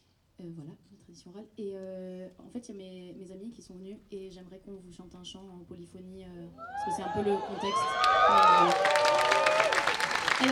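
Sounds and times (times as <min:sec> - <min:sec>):
speech: 0:00.4 - 0:09.2
people whooping and calling out: 0:06.6 - 0:10.5
audience applause: 0:06.8 - 0:10.5.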